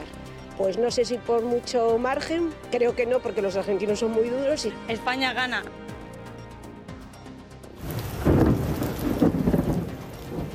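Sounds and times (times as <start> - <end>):
speech: 0.6 - 5.9
steady rain in a thunderstorm: 7.7 - 10.5
deep thunder rumbling: 7.8 - 10.5.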